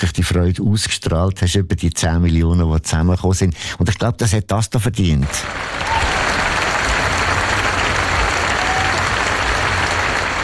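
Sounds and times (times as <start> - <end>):
speech: 0.0 - 6.0
audience applause: 5.3 - 10.4.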